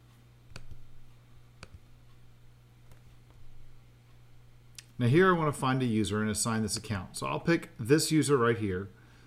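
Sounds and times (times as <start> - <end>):
low hum: 0.0 - 8.0
mouse clicks: 0.5 - 0.9, 1.6 - 2.2, 2.8 - 3.4
speech: 5.0 - 9.0.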